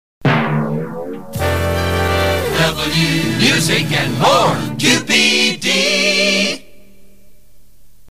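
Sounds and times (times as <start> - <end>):
music jingle: 0.3 - 6.6.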